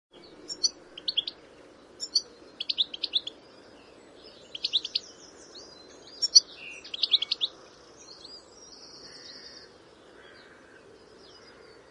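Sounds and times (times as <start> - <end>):
red-fronted serin calls: 0.5 - 1.4, 2.0 - 3.4, 4.5 - 5.2, 6.1 - 7.6.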